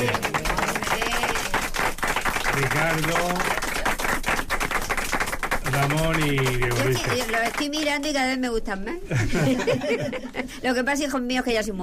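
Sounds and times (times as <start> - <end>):
applause for the technicians: 0.0 - 8.2
speech: 2.6 - 3.6, 5.8 - 11.8
laughter: 9.1 - 10.6.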